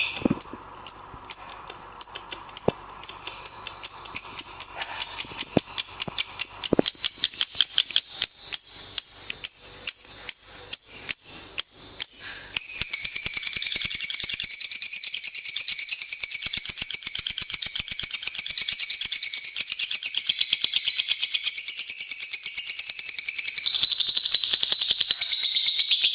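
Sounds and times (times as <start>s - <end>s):
lovebird rattling chatter: 1.3s - 11.1s, 12.2s - 26.1s.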